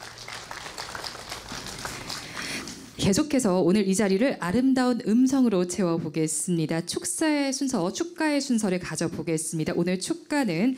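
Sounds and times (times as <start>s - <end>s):
audience applause: 0.0s - 3.0s
speech: 3.0s - 10.7s.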